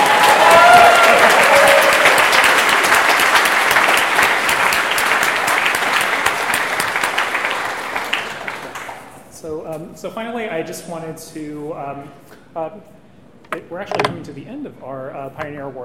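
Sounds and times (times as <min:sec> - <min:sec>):
crowd applause: 0:00.0 - 0:09.2
speech: 0:10.0 - 0:15.8.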